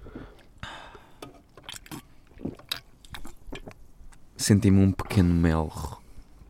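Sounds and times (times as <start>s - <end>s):
two young people sipping cider: 0.0s - 3.8s
speech: 4.4s - 6.0s.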